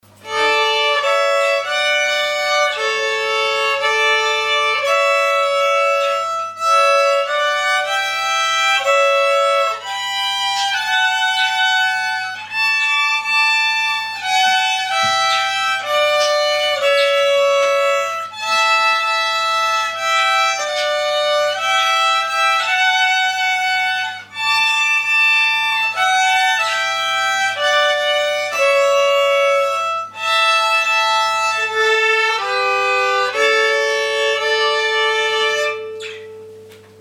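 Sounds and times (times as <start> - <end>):
violin: 0.0 - 36.8.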